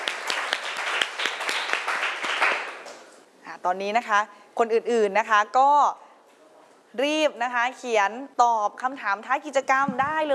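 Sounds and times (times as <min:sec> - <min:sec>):
classroom applause: 0:00.0 - 0:03.1
speech: 0:03.6 - 0:06.0, 0:06.9 - 0:10.3.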